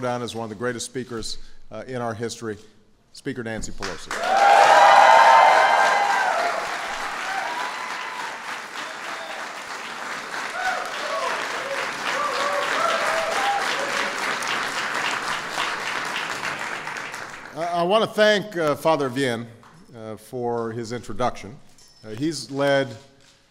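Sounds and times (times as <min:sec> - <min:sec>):
speech: 0:00.0 - 0:04.5, 0:17.9 - 0:23.1
large audience clapping: 0:03.8 - 0:17.9
faint indistinct voices and cheers: 0:04.2 - 0:09.6, 0:10.5 - 0:14.1.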